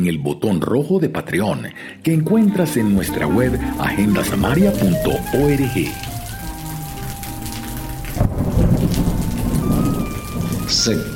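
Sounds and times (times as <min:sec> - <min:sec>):
speech: 0:00.0 - 0:06.2, 0:10.8 - 0:11.1
steady dense rainfall pattering on surfaces: 0:02.3 - 0:11.1
deep rumble of thunder: 0:03.2 - 0:11.1.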